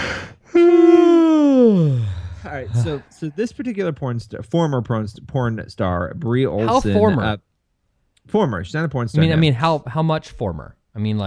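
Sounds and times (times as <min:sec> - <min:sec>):
person yawning: 0:00.0 - 0:03.1
speech: 0:02.6 - 0:07.5, 0:08.3 - 0:11.2.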